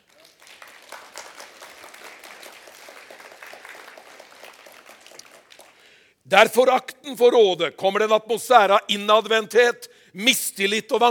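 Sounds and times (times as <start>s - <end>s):
audience applause: 0.0s - 6.0s
speech: 6.3s - 11.0s.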